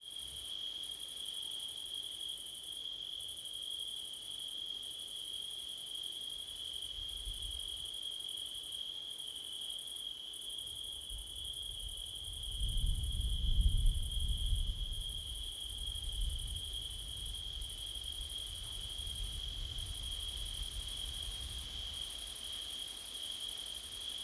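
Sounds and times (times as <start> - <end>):
cricket chorus on a windy September night: 0.0 - 24.2.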